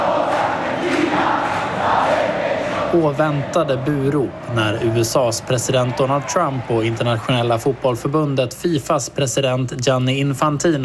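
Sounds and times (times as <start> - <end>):
Argentine fans singing together: 0.0 - 5.1
speech: 2.9 - 10.8.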